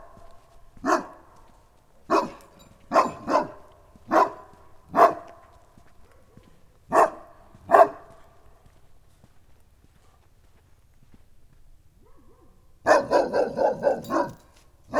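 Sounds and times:
St. Bernard barking deeply in a farmyard in Nagykőrös, Hungary: 0.8s - 1.4s, 2.1s - 5.4s, 6.2s - 8.2s, 12.0s - 14.9s.

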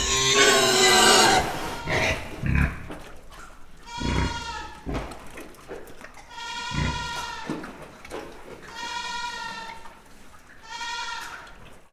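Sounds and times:
low grunt-like sound: 0.0s - 1.9s
goat bleating: 0.0s - 2.4s, 3.8s - 4.8s, 6.3s - 7.6s, 8.7s - 9.8s, 10.6s - 11.4s.

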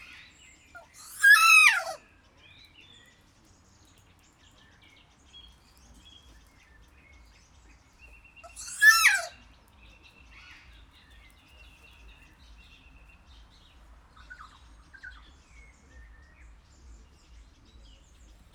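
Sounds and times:
captive kea giving a harsh screech in a zoo at Jászberény: 0.8s - 2.0s, 8.5s - 9.3s.

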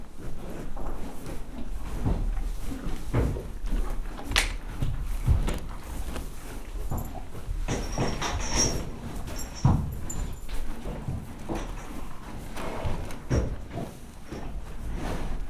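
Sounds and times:
horses eating in a stable in a farmyard: 0.0s - 15.4s.

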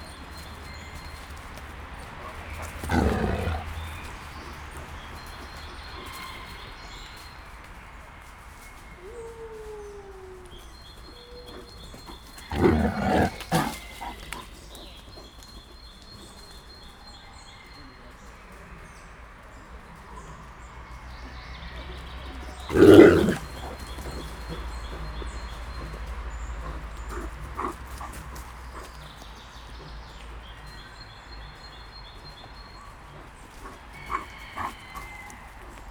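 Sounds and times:
Canadian white wolf growling: 2.0s - 6.2s, 12.0s - 14.7s, 22.5s - 29.5s, 33.6s - 35.2s.

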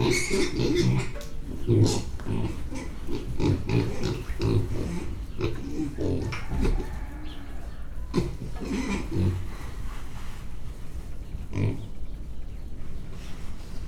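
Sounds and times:
pig grunting: 0.0s - 9.8s, 11.5s - 12.0s.

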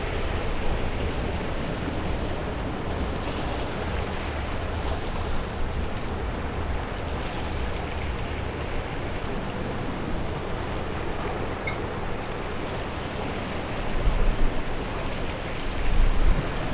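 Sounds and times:
waves: 0.0s - 16.7s.

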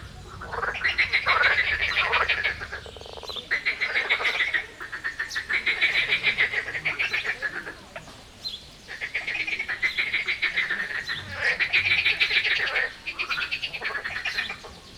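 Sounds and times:
edible frogs croaking in chorus at a zoo: 0.0s - 14.9s.

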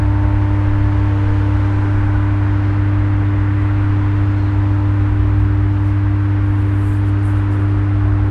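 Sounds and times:
power transformer hum: 0.0s - 8.2s.

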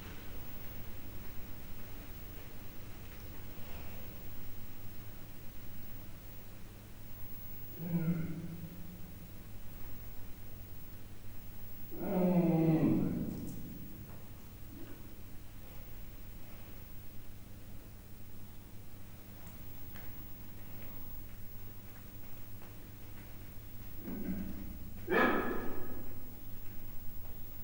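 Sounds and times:
captive male and female leopards growling: 7.7s - 9.2s, 11.9s - 14.0s, 24.0s - 26.4s.

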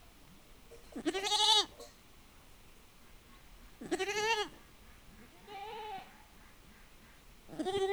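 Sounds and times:
goat bleating: 1.0s - 1.8s, 3.8s - 4.6s, 5.4s - 6.2s, 7.5s - 7.9s.

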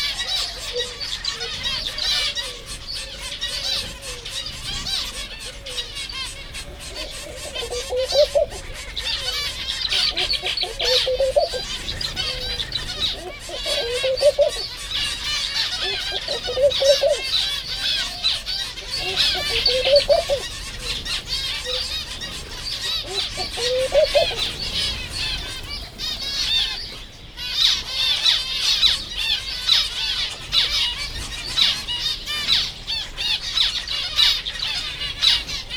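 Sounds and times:
chorus of chattering birds: 0.0s - 35.7s
white-handed gibbon calls: 6.9s - 14.8s, 15.7s - 17.4s, 18.9s - 20.5s, 23.0s - 24.5s.

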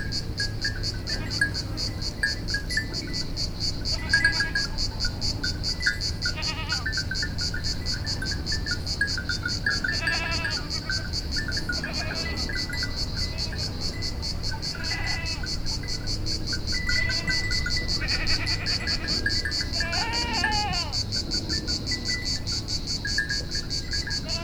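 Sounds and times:
pulsing insect chorus: 0.0s - 24.4s
goats bleating: 1.0s - 1.8s, 3.8s - 5.0s, 6.2s - 7.0s, 9.5s - 15.8s, 16.7s - 21.1s, 24.2s - 24.4s.

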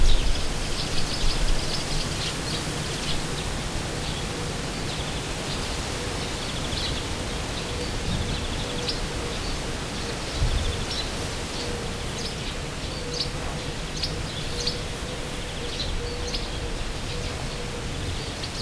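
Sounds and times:
wind outdoors at the inner terminus of a fishpond narrow-gauge railway: 0.0s - 18.6s.

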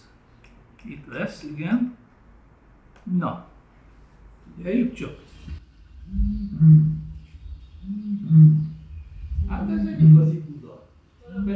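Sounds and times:
speech: 0.8s - 2.0s, 3.1s - 3.5s, 4.6s - 5.3s, 6.1s - 6.9s
Eurasian bittern booming call: 6.0s - 10.6s.

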